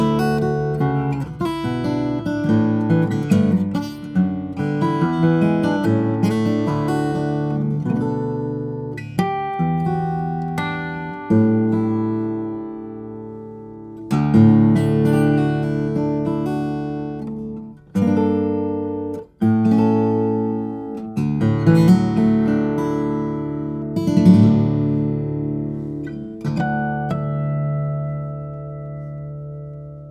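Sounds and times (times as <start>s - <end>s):
steel string flattop guitar of ziricote and cedar: 0.0s - 30.0s.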